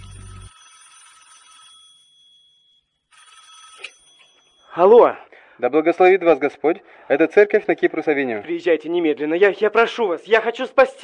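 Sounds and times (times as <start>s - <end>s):
telephone ringing during a call to a church: 0.0s - 4.7s
speech: 3.8s - 4.0s, 4.8s - 11.0s.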